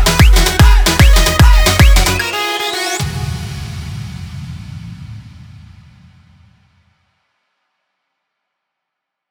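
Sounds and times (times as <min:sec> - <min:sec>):
EDM remix of an Odia DJ song: 0:00.0 - 0:04.0.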